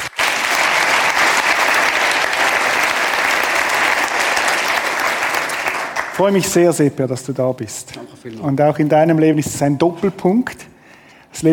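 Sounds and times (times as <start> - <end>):
audience applause: 0.0 - 6.6
speech: 6.2 - 10.7, 11.4 - 11.5.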